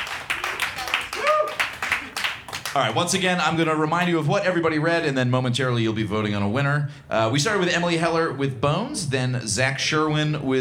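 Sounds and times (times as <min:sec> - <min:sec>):
audience applause at a comedy competition: 0:00.0 - 0:03.1
excited voices: 0:00.0 - 0:03.1
short whoops: 0:00.4 - 0:02.1
speech: 0:02.8 - 0:10.5.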